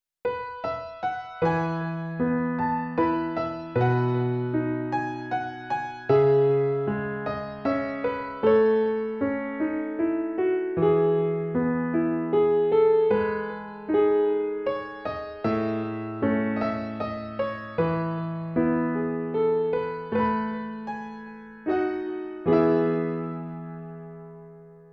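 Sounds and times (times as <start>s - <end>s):
solo piano: 0.0s - 24.9s.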